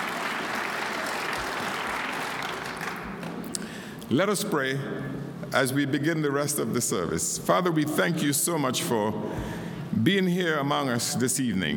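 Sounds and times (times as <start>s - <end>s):
audience hand clapping: 0.0s - 3.7s
speech: 4.1s - 11.7s.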